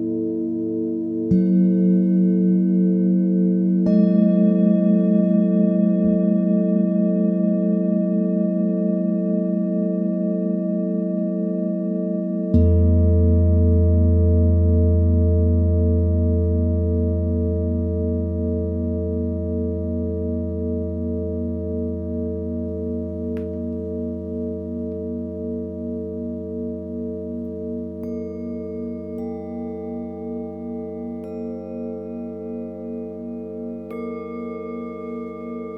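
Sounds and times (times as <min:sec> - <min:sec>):
singing bowls for sound massage therapy: 0:00.0 - 0:35.7.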